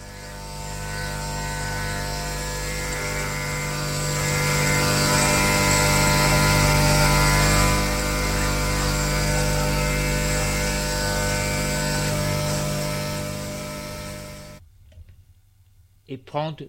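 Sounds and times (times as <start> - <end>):
shaving with a razor in a bathroom: 0.0 - 14.6
speech: 16.1 - 16.6.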